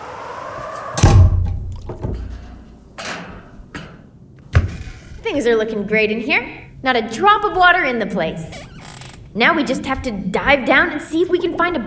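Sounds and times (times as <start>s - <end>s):
submarine hatch door slamming shut: 0.9s - 3.4s
speech: 5.3s - 8.7s, 9.3s - 11.8s.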